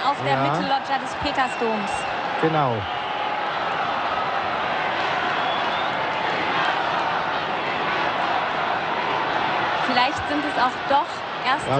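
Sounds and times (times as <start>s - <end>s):
crowd cheering: 0.0s - 11.7s
speech: 0.2s - 3.0s, 9.9s - 11.7s.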